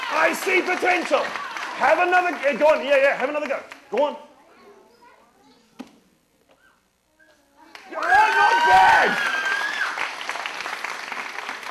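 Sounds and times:
audience applause: 0.0s - 3.8s, 7.7s - 11.6s
speech: 0.2s - 4.3s, 7.9s - 9.3s.

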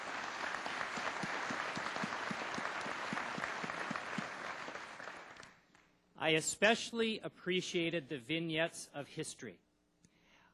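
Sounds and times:
audience applause: 0.0s - 5.6s
speech: 6.2s - 9.6s.

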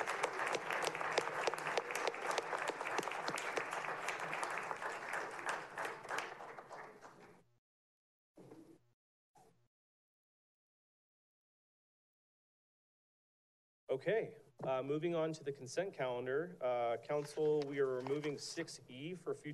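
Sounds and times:
crowd applauding: 0.0s - 7.4s
speech: 14.0s - 19.5s.

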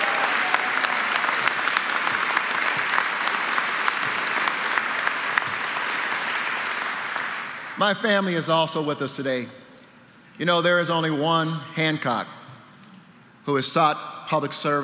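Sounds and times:
audience applause: 0.0s - 7.8s
speech: 7.8s - 9.6s, 10.4s - 12.4s, 13.5s - 14.8s.

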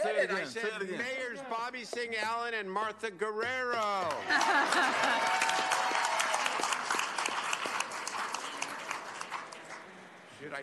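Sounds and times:
laughter: 0.0s - 1.2s, 4.1s - 5.6s
speech: 0.2s - 5.7s, 10.4s - 10.6s
audience applause: 4.1s - 10.0s.

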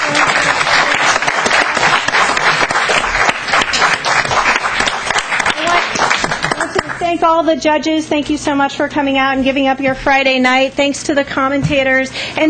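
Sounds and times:
crowd applause: 0.0s - 7.1s
speech: 7.2s - 12.4s.

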